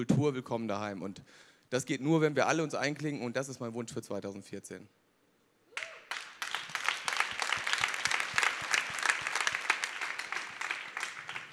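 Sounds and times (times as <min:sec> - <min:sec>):
speech: 0:00.0 - 0:05.0
audience applause: 0:05.8 - 0:11.5.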